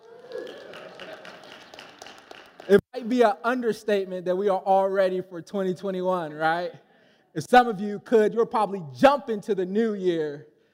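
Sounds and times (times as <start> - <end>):
audience applauding: 0.0 - 2.8
speech: 2.7 - 6.8, 7.4 - 10.5.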